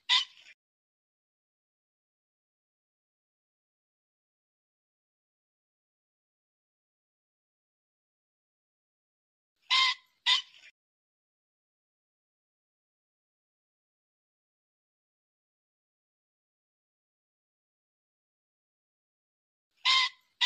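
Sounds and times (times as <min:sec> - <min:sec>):
pheasant squawking: 0:00.0 - 0:00.6, 0:09.7 - 0:10.7, 0:19.8 - 0:20.4.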